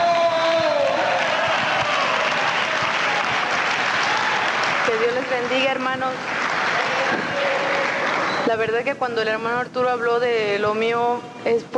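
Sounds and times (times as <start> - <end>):
audience applause: 0.0 - 8.5
speech: 5.3 - 6.5, 8.4 - 11.7.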